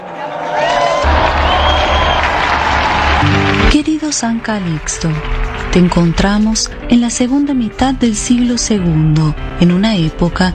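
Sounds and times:
audience applause and cheering: 0.0s - 6.8s
speech: 4.1s - 10.5s.

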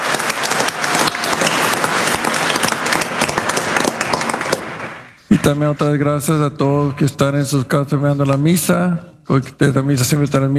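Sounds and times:
audience applause: 0.0s - 5.6s
speech: 5.3s - 10.5s.

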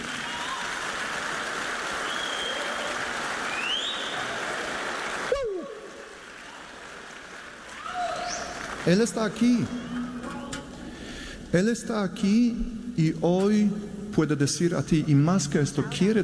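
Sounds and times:
audience applause: 0.0s - 9.8s
speech: 8.8s - 10.1s, 11.5s - 16.2s.

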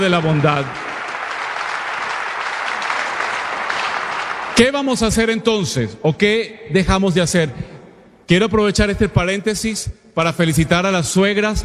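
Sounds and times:
speech: 0.0s - 0.9s, 4.6s - 7.7s, 8.3s - 11.6s
audience applause: 0.0s - 4.9s.

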